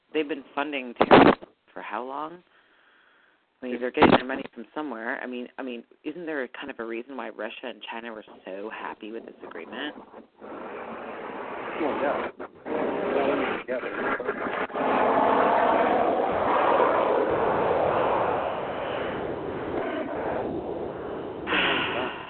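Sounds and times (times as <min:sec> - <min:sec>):
speech: 0:00.2 - 0:02.6, 0:03.6 - 0:10.9, 0:11.8 - 0:12.8, 0:13.7 - 0:14.3
jet airliner flying overhead: 0:14.6 - 0:22.2.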